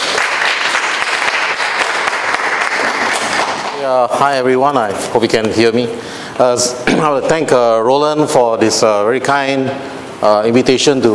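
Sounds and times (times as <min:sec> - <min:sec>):
audience applause welcoming a lecturer to a talk on transnational terrorism: 0:00.0 - 0:03.9
speech: 0:03.9 - 0:11.1.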